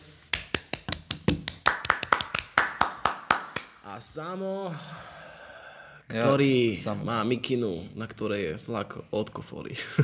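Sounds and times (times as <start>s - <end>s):
people clapping: 0.3s - 3.8s
speech: 4.0s - 5.2s, 6.1s - 10.0s.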